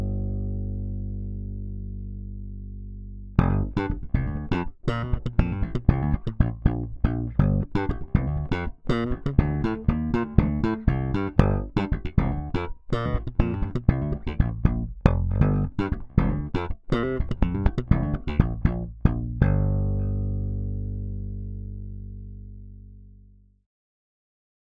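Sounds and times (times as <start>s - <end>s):
slap bass guitar: 0.0s - 23.6s.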